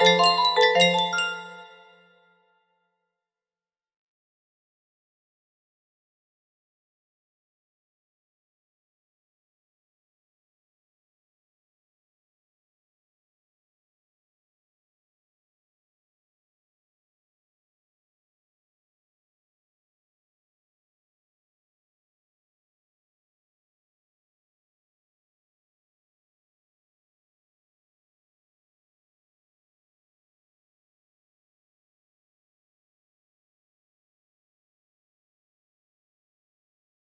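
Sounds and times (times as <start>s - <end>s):
music box: 0.0s - 2.2s.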